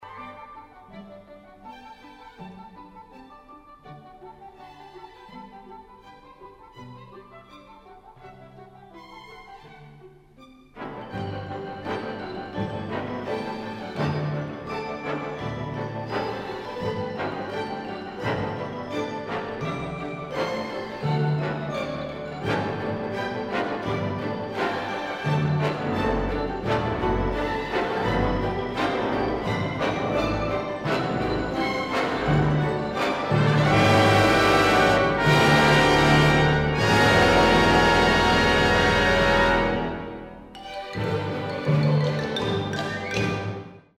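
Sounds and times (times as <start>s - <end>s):
marimba: 11.1s - 43.8s.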